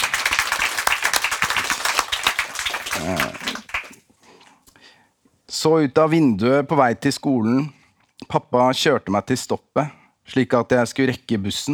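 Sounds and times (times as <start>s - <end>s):
audience clapping: 0.0s - 4.0s
speech: 3.0s - 3.5s, 5.6s - 11.7s.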